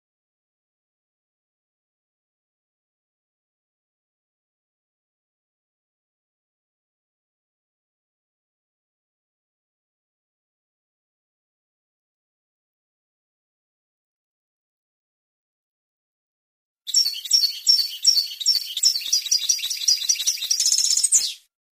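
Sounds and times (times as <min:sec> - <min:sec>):
European goldfinch song: 0:16.9 - 0:21.5.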